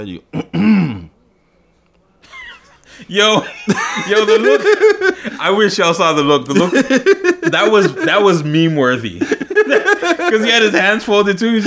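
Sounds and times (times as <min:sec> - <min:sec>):
speech: 0:00.0 - 0:00.9, 0:03.1 - 0:11.6
person clearing throat: 0:00.3 - 0:01.2
laughter: 0:02.2 - 0:11.6.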